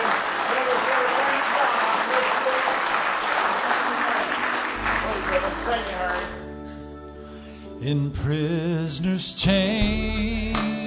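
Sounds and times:
audience hand clapping of praise: 0.0 - 6.5
speech: 7.8 - 10.7.

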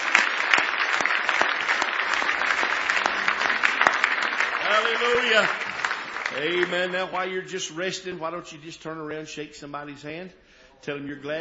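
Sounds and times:
audience clapping hands: 0.0 - 7.4
speech: 4.9 - 5.6, 6.3 - 11.3.

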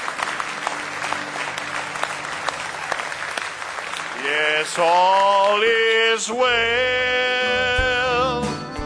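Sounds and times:
audience hand clapping: 0.0 - 6.4
speech: 4.2 - 8.7.

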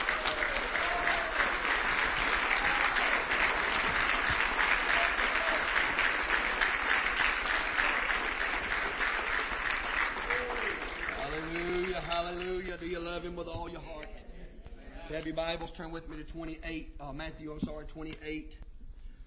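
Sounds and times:
audience hand clapping in praise: 0.0 - 13.1
speech: 15.1 - 18.6.

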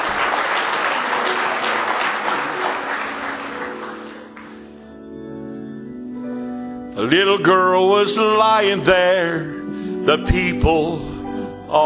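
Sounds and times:
audience clapping hands in praise: 0.0 - 5.0
sustained organ or keyboard tones: 0.0 - 11.8
speech: 7.0 - 11.1.

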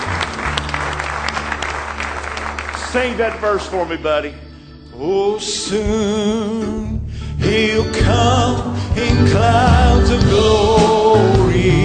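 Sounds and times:
church congregation clapping in praise: 0.0 - 4.3
speech: 2.9 - 4.4, 5.0 - 11.8.

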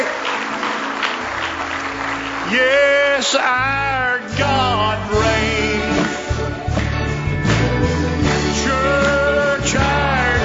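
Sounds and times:
church congregation clapping hands in praise during a service: 0.0 - 4.2, 5.8 - 7.8, 8.9 - 10.4
speech: 2.5 - 5.2.

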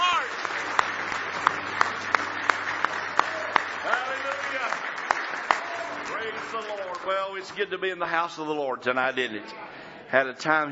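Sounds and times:
audience hand clapping: 0.0 - 8.2
speech: 7.4 - 10.7.

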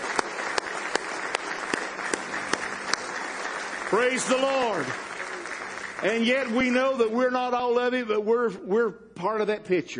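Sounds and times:
audience hand clapping: 0.0 - 7.5
speech: 3.9 - 5.1, 6.0 - 9.9.

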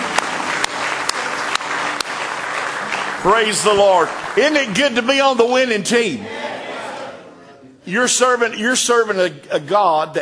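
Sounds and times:
church congregation clapping hands in praise during a service: 0.0 - 6.0
speech: 3.2 - 6.4, 7.9 - 10.2.

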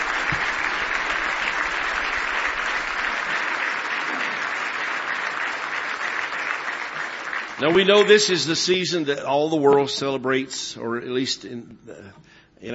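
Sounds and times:
audience applause: 0.0 - 8.2
speech: 7.6 - 12.7.

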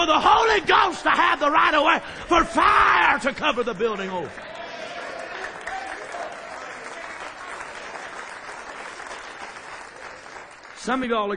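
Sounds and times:
speech: 0.0 - 4.5, 10.8 - 11.3
audience clapping: 3.0 - 11.3.

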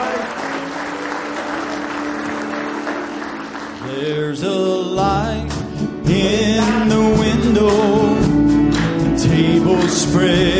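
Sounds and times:
audience hand clapping: 0.0 - 4.5
speech: 4.0 - 8.1, 9.3 - 10.5.

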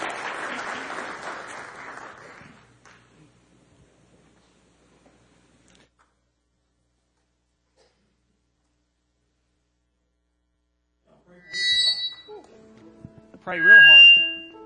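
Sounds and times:
audience applause: 0.0 - 2.8
speech: 13.5 - 14.2.

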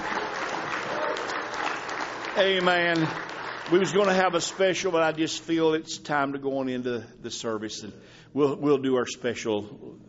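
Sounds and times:
church congregation clapping in praise during a service: 0.0 - 5.4
speech: 2.4 - 10.0.

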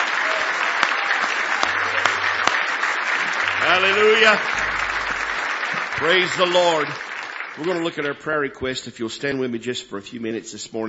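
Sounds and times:
audience applauding: 0.0 - 8.2
speech: 3.7 - 4.7, 6.0 - 7.0, 7.6 - 10.8.

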